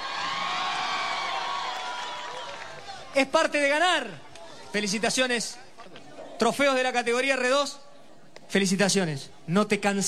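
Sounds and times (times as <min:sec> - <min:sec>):
spectators clapping at a car rally awards ceremony: 0:00.0 - 0:03.1
speech: 0:03.2 - 0:07.8, 0:08.5 - 0:10.0.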